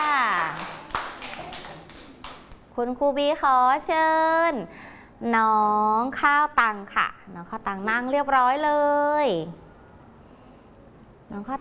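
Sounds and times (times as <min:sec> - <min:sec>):
children clapping in a classroom to cheer a classmate: 0:00.0 - 0:02.6
speech: 0:02.8 - 0:09.6, 0:11.3 - 0:11.5.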